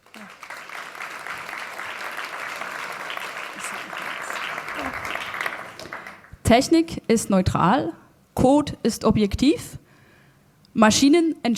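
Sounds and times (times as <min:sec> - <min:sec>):
warm audience applause: 0:00.0 - 0:06.4
speech: 0:06.5 - 0:09.8, 0:10.8 - 0:11.5.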